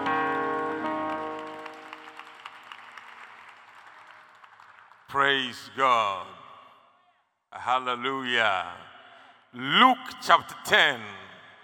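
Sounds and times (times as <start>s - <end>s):
sustained keyboard chord: 0.0s - 2.3s
audience clapping: 0.0s - 5.6s
speech: 5.1s - 6.4s, 7.5s - 8.9s, 9.5s - 11.2s.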